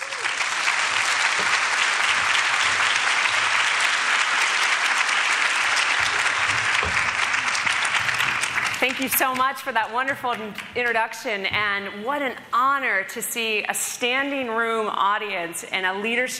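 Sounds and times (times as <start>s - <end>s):
audience applause at a women's leadership conference: 0.0s - 9.6s
speech: 8.8s - 16.3s.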